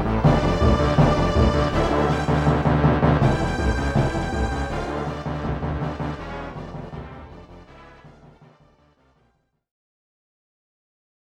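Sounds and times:
requiem: 0.0 - 6.9.

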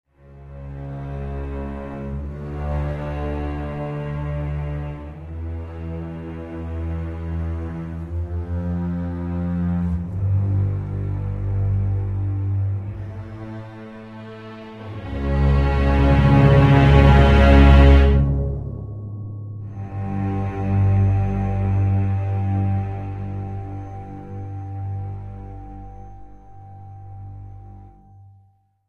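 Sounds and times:
tense music: 0.2 - 28.5.

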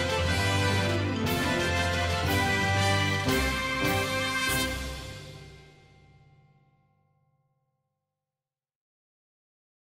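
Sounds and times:
infantry song in Japanese: 0.0 - 6.0.

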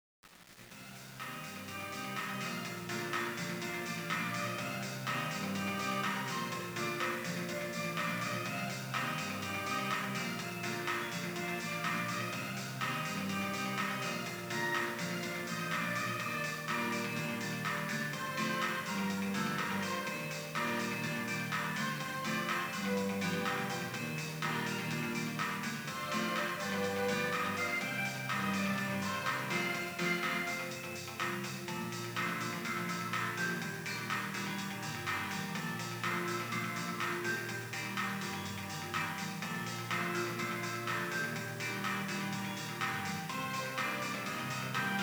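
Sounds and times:
karaoke backing music: 0.8 - 45.0.

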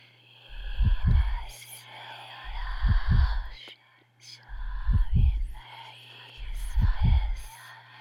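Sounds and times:
slow heartbeat: 0.5 - 1.6, 2.5 - 3.6, 4.5 - 5.6, 6.4 - 7.6.

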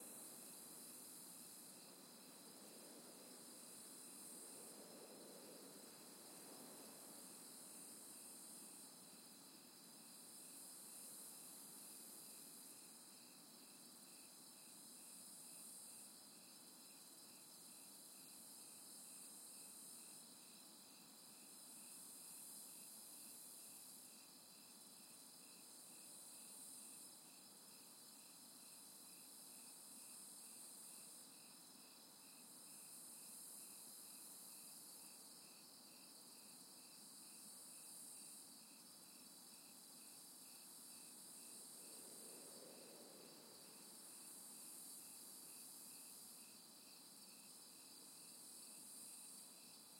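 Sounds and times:
outdoor ambience: 0.0 - 49.9.

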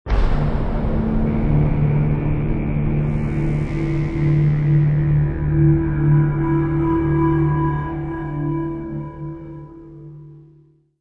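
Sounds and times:
modern foreboding music: 0.1 - 10.5.

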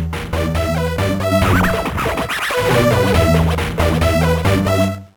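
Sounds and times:
bathroom music jam: 0.2 - 4.7.

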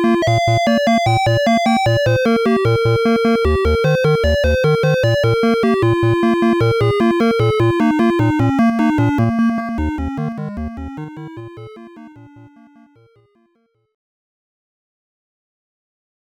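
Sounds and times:
challenging stage game music: 0.0 - 12.8.

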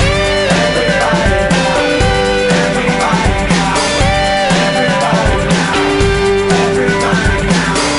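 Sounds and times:
blues rock: 0.0 - 7.9.

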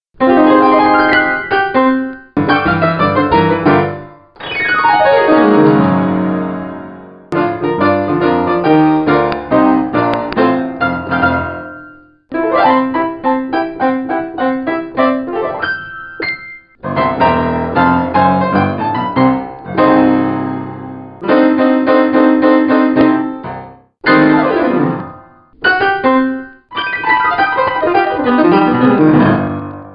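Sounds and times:
piano riffs: 0.2 - 29.9.

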